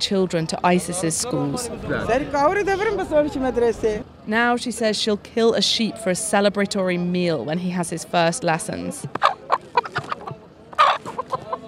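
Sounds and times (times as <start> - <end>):
speech: 0.0 - 9.3
chickens clucking at a fence: 9.0 - 11.6.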